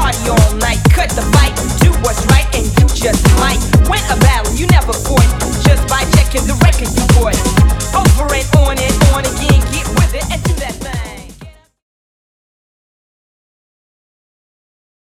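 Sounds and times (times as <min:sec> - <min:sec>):
drum machine beat: 0:00.0 - 0:11.7.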